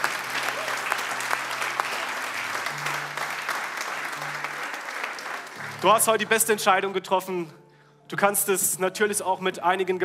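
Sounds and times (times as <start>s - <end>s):
crowd applauding: 0.0s - 6.8s
speech: 5.8s - 10.0s.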